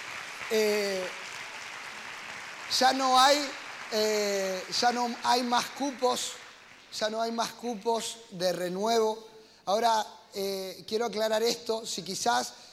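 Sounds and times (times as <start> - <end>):
audience clapping: 0.0 - 7.6
speech: 0.5 - 1.2, 2.7 - 12.7.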